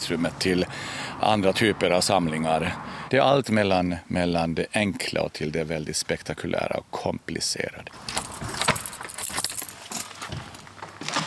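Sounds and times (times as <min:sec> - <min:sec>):
speech: 0:00.1 - 0:08.3
keys jangling: 0:08.0 - 0:10.9.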